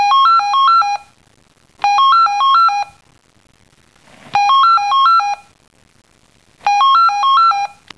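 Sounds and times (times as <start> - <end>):
telephone: 0.0 - 1.1, 1.8 - 3.0, 4.2 - 5.5, 6.6 - 7.9.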